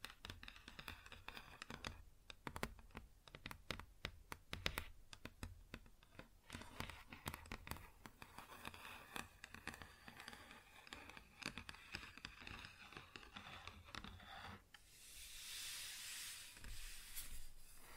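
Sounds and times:
fingers tapping and scratching a wooden surface: 0:00.0 - 0:14.1
bright hissy scraping: 0:14.8 - 0:17.8.

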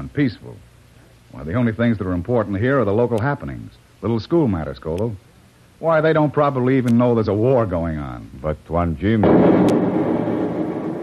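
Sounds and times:
speech: 0:00.0 - 0:00.7, 0:01.3 - 0:09.7
explosion: 0:09.2 - 0:11.0
low rumble: 0:09.2 - 0:11.0.

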